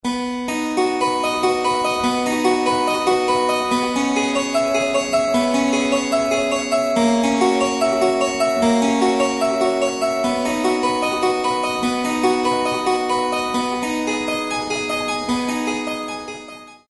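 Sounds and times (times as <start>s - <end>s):
keyboard prelude: 0.0s - 16.8s.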